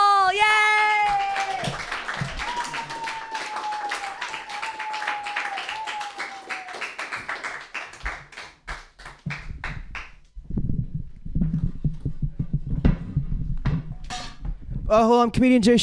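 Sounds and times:
audience clapping at a comedy club to welcome a comedian: 0:01.0 - 0:10.3
low thumps: 0:09.2 - 0:15.1
speech: 0:14.9 - 0:15.8.

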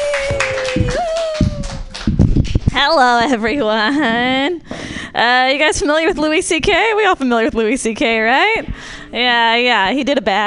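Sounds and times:
audience clapping: 0:00.0 - 0:02.8
speech: 0:00.8 - 0:01.0, 0:02.8 - 0:10.4.

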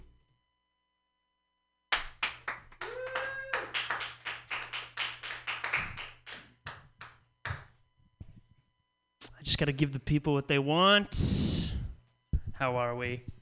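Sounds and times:
round of applause: 0:01.9 - 0:07.7
speech: 0:09.5 - 0:11.5, 0:12.6 - 0:13.3.

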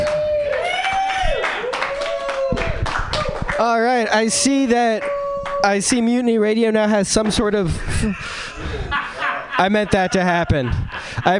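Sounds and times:
audience clapping: 0:00.0 - 0:06.2
speech: 0:03.6 - 0:08.7, 0:09.6 - 0:11.3
laughter: 0:07.5 - 0:11.3.

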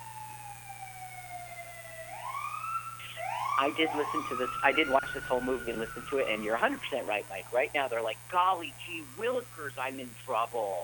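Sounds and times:
police car siren passing outside: 0:00.0 - 0:07.6
speech: 0:03.6 - 0:10.8.

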